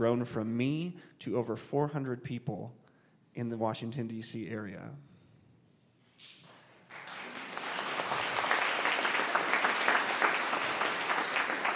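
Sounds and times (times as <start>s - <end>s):
speech: 0.0s - 2.8s, 3.4s - 5.1s
audience clapping: 6.2s - 11.7s.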